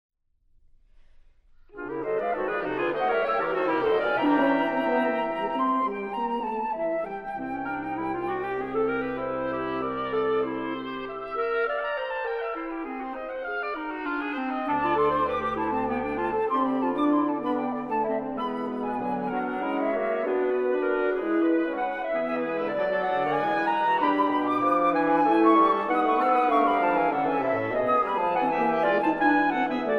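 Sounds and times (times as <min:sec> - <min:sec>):
woodwind quintet playing: 0:01.7 - 0:29.9.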